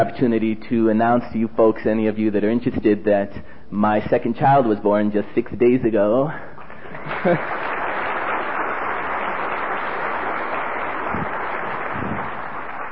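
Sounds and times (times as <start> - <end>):
speech: 0.0 - 7.6
audience applause: 6.8 - 12.9.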